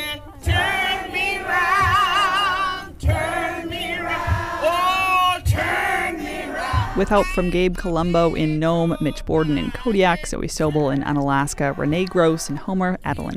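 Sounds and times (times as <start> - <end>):
low thuds: 0.4 - 13.1
crowd of marchers cheering at rally: 0.5 - 7.0
speech: 7.0 - 13.3.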